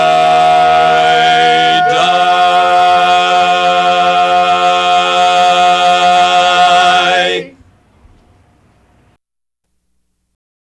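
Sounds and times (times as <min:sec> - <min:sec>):
bass line: 0:00.0 - 0:07.5.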